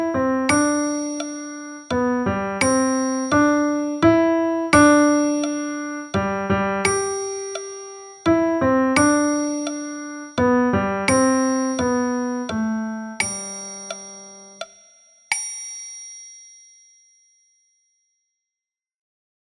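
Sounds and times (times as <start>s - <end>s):
lullaby on piano: 0.0s - 14.7s.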